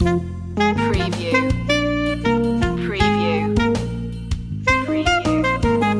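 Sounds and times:
music loop: 0.8s - 5.9s.

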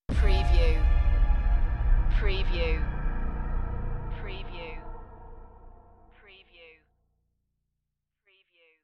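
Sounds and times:
urban underground alarming trailer hit: 0.1s - 6.2s.

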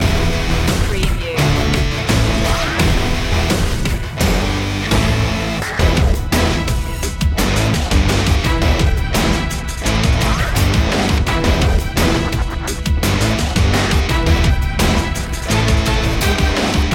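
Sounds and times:
big cinematic hip hop loop: 0.0s - 16.9s.

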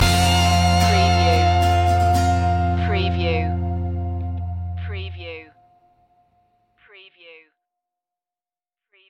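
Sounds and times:
music loop: 0.0s - 5.5s.

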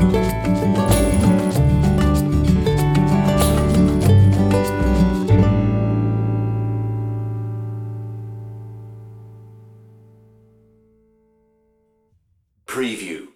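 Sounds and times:
casual music: 0.0s - 10.0s.

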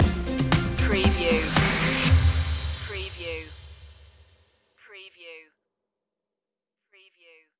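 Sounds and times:
music stinger: 0.0s - 4.2s.

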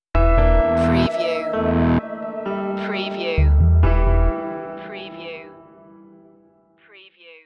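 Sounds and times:
detective music stinger: 0.2s - 4.8s.

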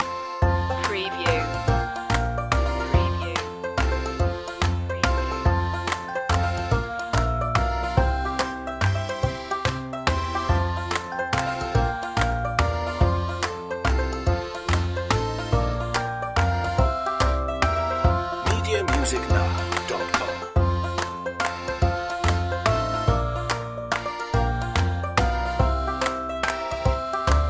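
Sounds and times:
instrumental folk song: 0.0s - 27.4s.

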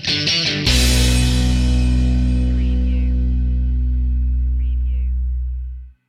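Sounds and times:
rock music stinger: 0.1s - 5.9s.

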